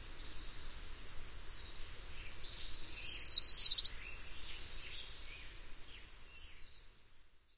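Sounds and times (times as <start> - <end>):
Orange-crowned Warbler singing in North America: 0.1 - 6.8.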